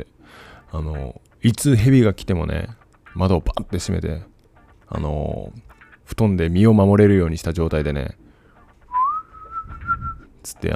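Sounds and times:
speech: 0.0s - 4.3s, 4.9s - 8.2s, 10.4s - 10.7s
human whistling to call a snake: 8.8s - 10.3s.

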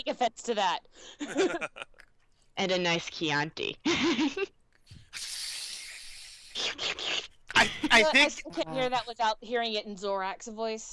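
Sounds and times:
speech: 0.0s - 1.9s, 2.6s - 4.6s, 6.6s - 10.9s
laughter: 1.1s - 1.8s, 3.9s - 4.5s, 7.6s - 9.1s
person hissing like a snake with the tongue: 5.2s - 6.9s.

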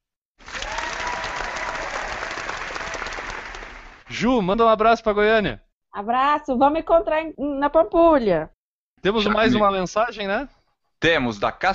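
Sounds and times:
audience applause: 0.4s - 4.3s
speech: 4.1s - 11.7s.

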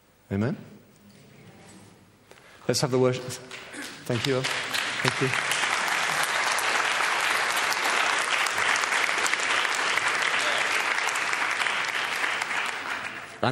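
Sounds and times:
speech: 0.3s - 0.8s, 2.7s - 5.5s
audience applause: 3.8s - 13.4s.

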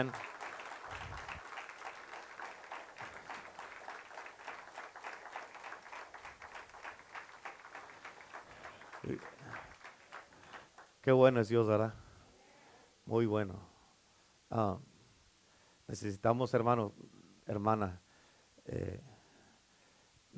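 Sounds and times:
speech: 0.0s - 0.3s, 9.0s - 9.4s, 11.0s - 12.0s, 13.1s - 13.7s, 14.5s - 14.9s, 15.9s - 18.0s, 18.6s - 19.1s
audience applause: 0.0s - 10.9s.

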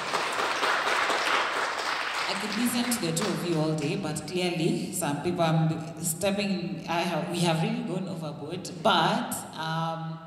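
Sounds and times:
audience applause: 0.0s - 3.3s
speech: 2.4s - 10.2s.

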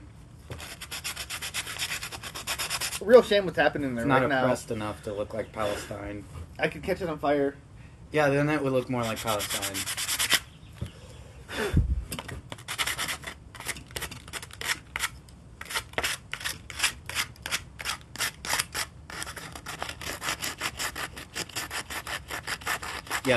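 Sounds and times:
sandpaper rubbed over wood: 0.5s - 3.1s, 8.9s - 10.5s, 12.6s - 23.3s
speech: 3.0s - 10.0s.

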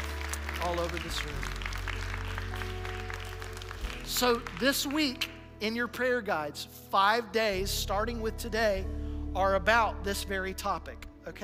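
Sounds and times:
audience clapping hands: 0.0s - 5.4s
speech: 0.6s - 1.6s, 4.1s - 11.4s.

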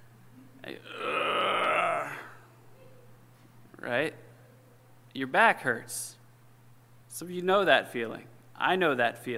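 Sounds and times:
groan of someone getting up from a chair: 0.8s - 2.5s
speech: 5.2s - 6.2s, 7.1s - 9.3s.

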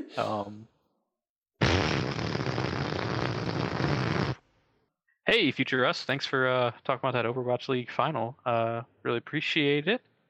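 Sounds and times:
speech: 0.1s - 0.8s, 5.3s - 10.1s
loud fart: 1.6s - 4.5s.

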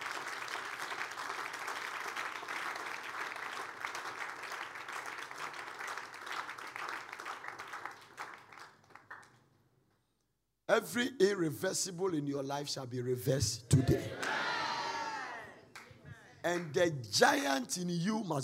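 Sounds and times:
audience clapping: 0.0s - 9.6s, 13.8s - 17.6s
speech: 10.7s - 14.3s, 16.4s - 18.4s.

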